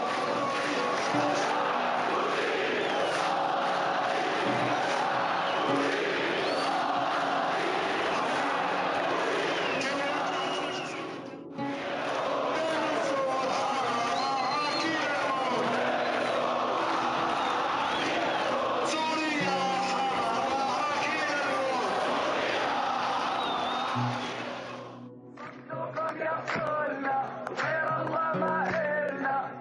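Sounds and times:
protest crowd chanting slogans: 0.0s - 29.3s.

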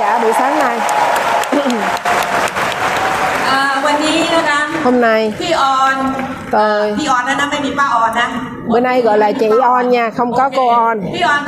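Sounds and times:
crowd applause: 0.0s - 6.8s
speech: 4.8s - 11.4s.

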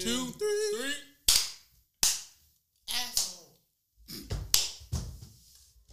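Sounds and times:
speech: 0.0s - 1.1s
hands clapping: 1.3s - 2.4s, 4.3s - 4.9s.

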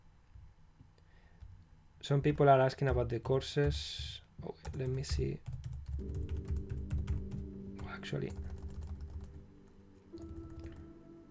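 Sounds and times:
speech: 2.1s - 6.5s, 8.0s - 8.4s
quick typing on a computer keyboard: 2.3s - 10.9s.

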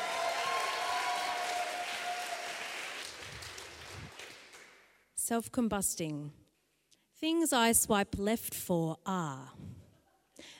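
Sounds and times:
audience applauding a performer: 0.0s - 4.8s
speech: 5.3s - 6.4s, 7.2s - 9.8s.

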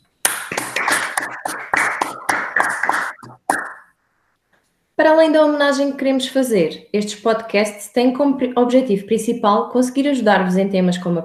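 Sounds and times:
applause: 0.3s - 3.3s
speech: 5.0s - 11.2s.

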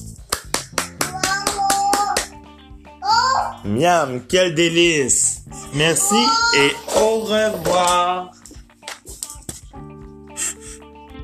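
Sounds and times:
children clapping: 0.3s - 2.4s
speech: 3.6s - 8.4s.

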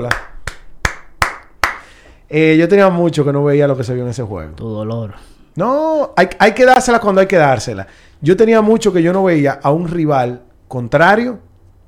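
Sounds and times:
speech: 0.0s - 0.3s, 2.3s - 11.5s
hands clapping into the microphone: 0.0s - 2.2s.

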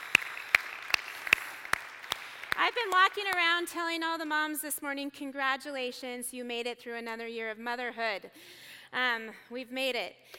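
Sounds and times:
audience clapping: 0.0s - 4.3s
speech: 2.6s - 10.3s.

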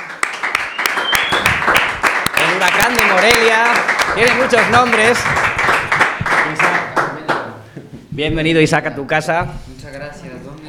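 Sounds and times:
audience applause: 0.0s - 7.3s
speech: 2.7s - 5.8s, 8.2s - 10.3s.

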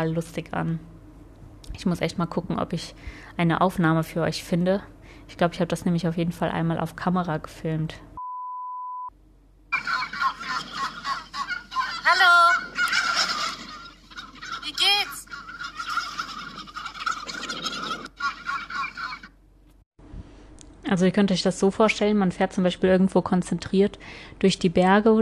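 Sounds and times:
speech: 0.0s - 0.9s, 1.7s - 8.1s, 20.9s - 25.2s
short electronic beep: 8.2s - 9.1s
flock of turkeys cackling and gobbling: 9.7s - 19.4s.

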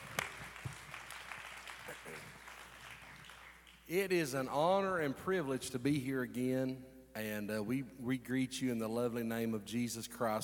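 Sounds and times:
audience clapping hands: 0.0s - 3.9s
speech: 3.9s - 10.4s.

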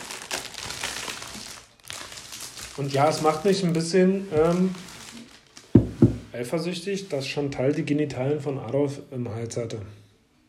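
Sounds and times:
crinkling of a waffle package being opened: 0.0s - 5.8s
speech: 2.8s - 4.9s, 6.4s - 10.0s.

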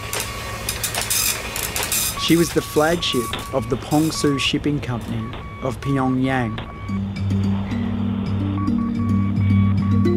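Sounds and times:
fax machine printing: 0.0s - 7.0s
steady low mechanical hum: 0.0s - 10.0s
speech: 2.3s - 7.5s.

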